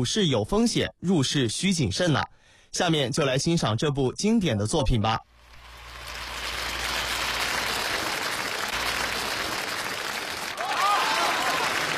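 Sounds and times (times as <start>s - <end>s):
speech: 0.0s - 5.3s
audience applause: 5.5s - 11.9s.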